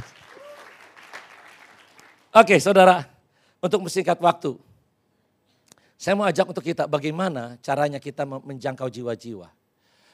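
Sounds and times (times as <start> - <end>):
audience applause: 0.0 - 2.3
speech: 2.4 - 4.7, 6.0 - 9.6.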